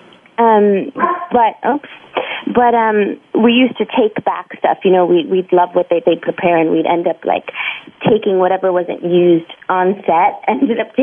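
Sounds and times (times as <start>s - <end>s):
speech: 0.4s - 11.0s
pet dog Blue yelping and barking: 1.0s - 1.4s.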